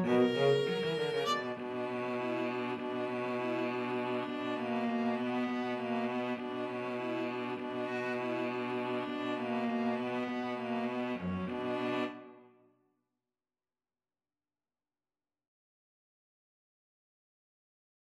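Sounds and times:
string trio playing: 0.0s - 12.4s.

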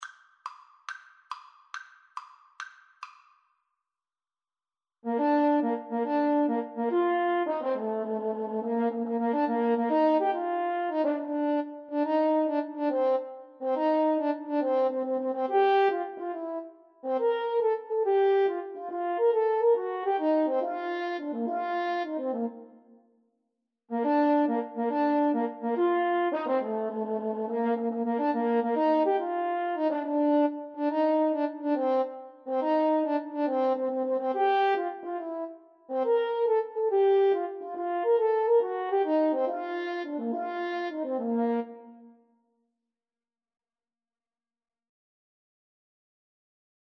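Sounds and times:
french horn duet: 5.1s - 22.6s, 24.0s - 42.0s.

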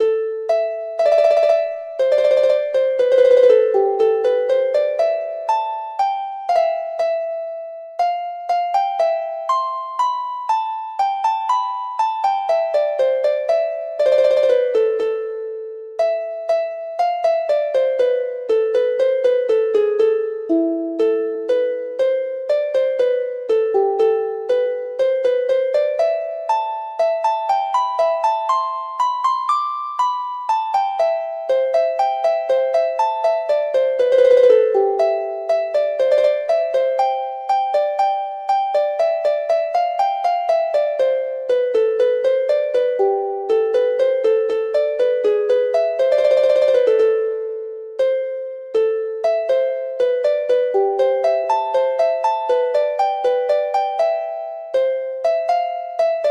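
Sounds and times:
harp: 0.0s - 56.2s.

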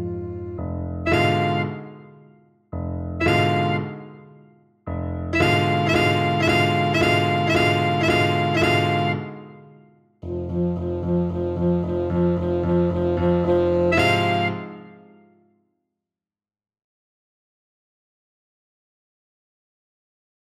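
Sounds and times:
saxophone: 0.0s - 2.1s, 3.2s - 4.2s, 5.3s - 9.6s, 10.2s - 15.2s.

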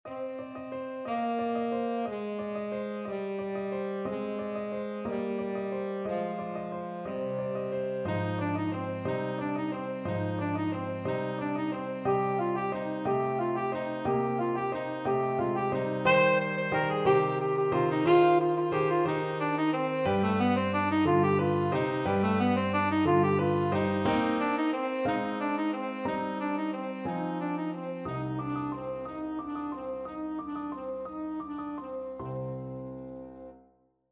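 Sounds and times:
tenor saxophone: 0.1s - 32.9s.

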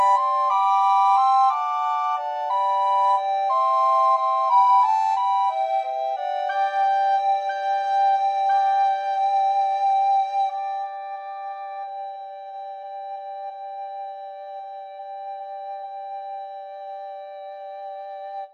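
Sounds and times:
recorder trio playing: 0.0s - 11.7s.

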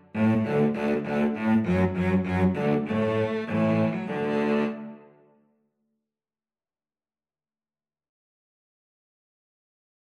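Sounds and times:
cello duet: 0.0s - 5.3s.

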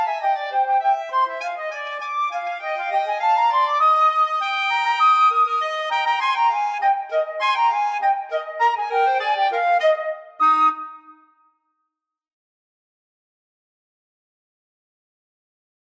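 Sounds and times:
flute and clarinet duet: 0.0s - 11.3s.

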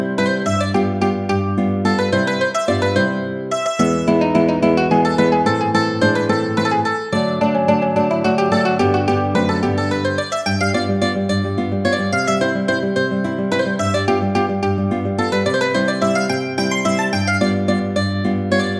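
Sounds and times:
guitar in a mandolin guitar duet: 0.0s - 18.7s
mandolin in a mandolin guitar duet: 0.0s - 18.7s.

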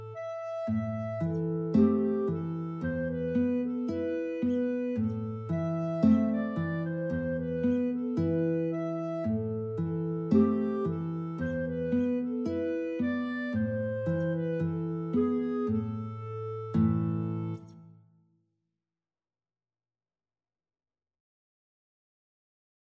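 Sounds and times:
guitar and clarinet duet: 0.0s - 18.0s.

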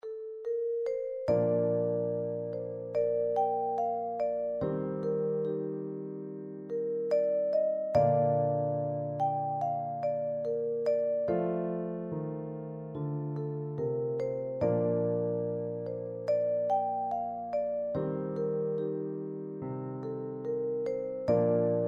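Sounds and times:
vibraphone: 0.0s - 21.8s.

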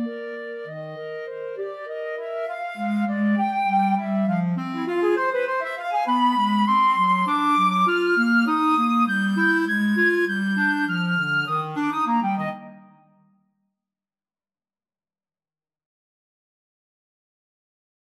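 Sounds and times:
flute in a flute clarinet duet: 0.0s - 13.2s
clarinet in a flute clarinet duet: 0.0s - 13.3s.

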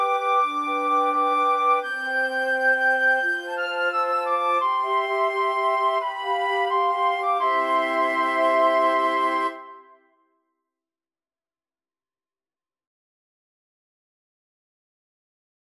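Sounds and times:
flute quartet playing a Christmas carol: 0.0s - 9.8s.

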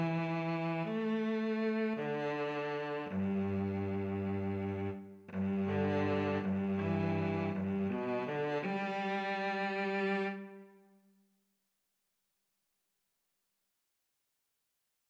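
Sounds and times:
cello: 0.0s - 10.9s
violin: 0.0s - 10.9s.

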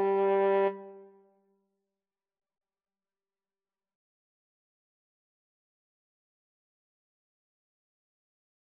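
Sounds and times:
French horn duet: 0.0s - 1.0s.

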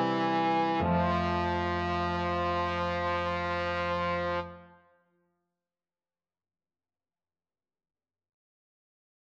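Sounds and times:
trombone: 0.0s - 4.7s.

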